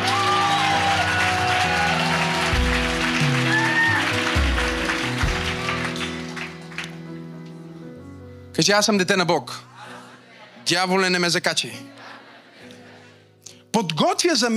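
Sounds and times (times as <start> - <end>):
audience clapping: 0.0 - 7.2
speech: 8.6 - 9.7, 10.7 - 12.0, 13.8 - 14.5
laughter: 9.7 - 13.4.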